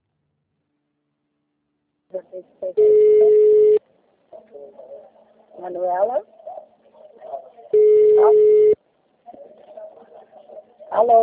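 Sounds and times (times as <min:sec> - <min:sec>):
speech: 0:02.1 - 0:03.6, 0:04.5 - 0:06.4, 0:08.2 - 0:08.6, 0:11.0 - 0:11.2
telephone busy signal: 0:02.8 - 0:03.8, 0:07.8 - 0:08.8
faint voices murmuring: 0:04.2 - 0:11.2.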